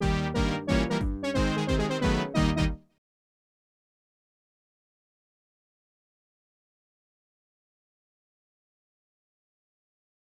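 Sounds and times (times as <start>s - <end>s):
level complete jingle: 0.0s - 2.8s.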